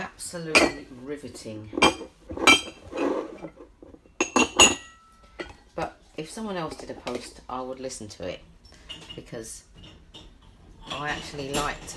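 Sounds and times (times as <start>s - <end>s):
speech: 0.2s - 2.1s, 6.2s - 8.5s, 9.2s - 9.7s, 11.0s - 11.9s
dishes and cutlery clinking while emptying a dishwasher: 0.5s - 5.6s, 8.7s - 11.9s.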